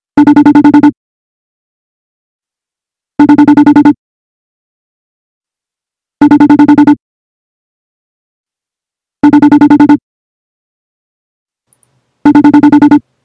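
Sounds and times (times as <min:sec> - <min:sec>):
FaceTime outgoing call ringtone: 0:00.2 - 0:01.0, 0:03.2 - 0:04.0, 0:06.2 - 0:07.0, 0:09.2 - 0:10.0, 0:12.3 - 0:13.0.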